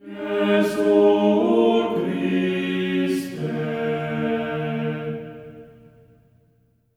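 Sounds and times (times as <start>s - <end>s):
choir singing on D#4: 0.0s - 6.0s.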